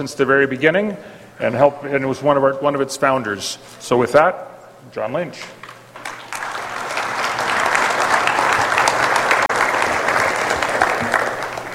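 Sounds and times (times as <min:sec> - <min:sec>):
speech: 0:00.0 - 0:05.6
audience applause: 0:06.0 - 0:11.7.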